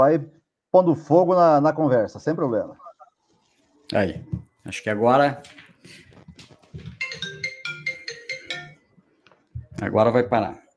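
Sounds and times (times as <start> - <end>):
speech: 0.0 - 2.8, 3.9 - 7.2, 9.8 - 10.6
mobile phone ringing: 6.9 - 9.0.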